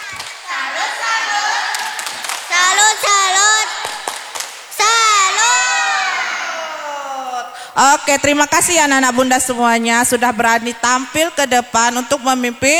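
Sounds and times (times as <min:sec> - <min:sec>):
children clapping a salute clap: 0:00.0 - 0:06.6
speech: 0:07.8 - 0:12.7.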